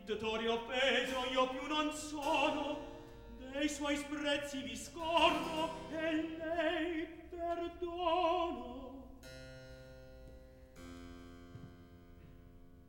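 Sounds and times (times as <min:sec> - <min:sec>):
opera recitative: 0:00.0 - 0:09.2.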